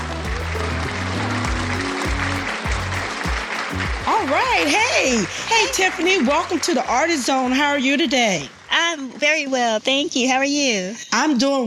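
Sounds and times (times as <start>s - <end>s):
music with deep repeated bass notes: 0.0s - 5.5s
audience applause welcoming a guest bassist: 0.0s - 9.5s
speech: 4.2s - 11.6s.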